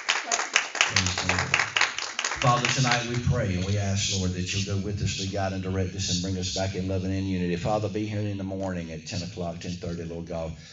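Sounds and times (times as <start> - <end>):
audience clapping hands in praise: 0.0 - 3.9
speech: 2.4 - 10.7.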